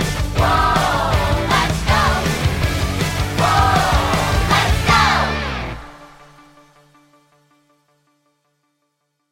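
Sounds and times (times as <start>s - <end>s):
song with vocals: 0.0s - 6.6s.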